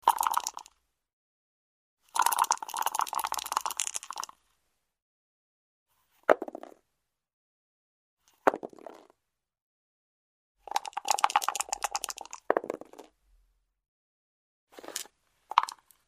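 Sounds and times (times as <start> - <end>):
dice being shaken and thrown: 2.2 - 4.4, 8.4 - 9.1, 10.7 - 13.1, 14.8 - 15.9.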